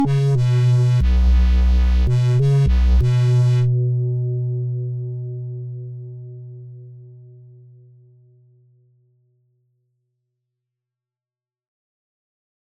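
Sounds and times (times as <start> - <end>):
90s synthesizer: 0.0 - 7.0.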